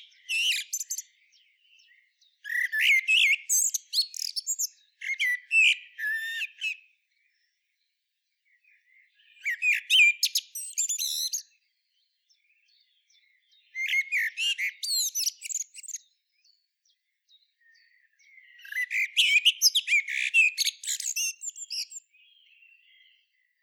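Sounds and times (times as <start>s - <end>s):
common blackbird singing: 0.0s - 23.6s.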